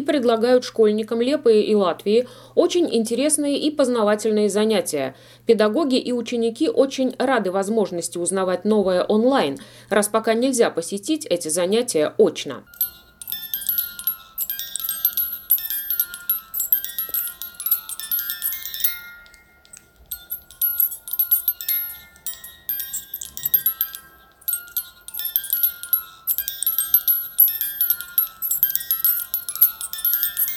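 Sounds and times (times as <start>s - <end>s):
speech: 0.0s - 12.9s
music box melody played in a school lesson on sound: 12.7s - 30.5s.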